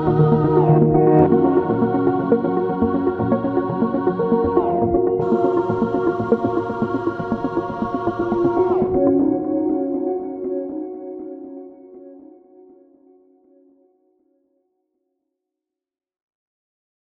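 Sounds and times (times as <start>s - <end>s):
organic synthesizer music: 0.0s - 13.0s.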